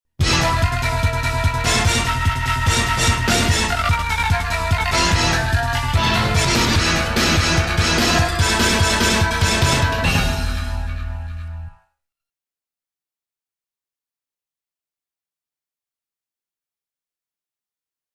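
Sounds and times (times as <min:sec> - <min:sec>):
continue game over music: 0:00.2 - 0:11.8.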